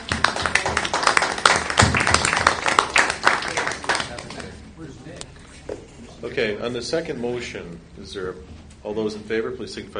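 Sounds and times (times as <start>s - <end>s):
round of applause: 0.0s - 4.6s
speech: 6.4s - 9.9s.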